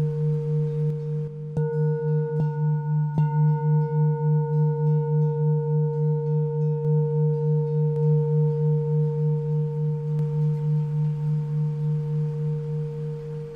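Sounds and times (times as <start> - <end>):
old handmade singing bowl ringing: 0.0 - 13.5.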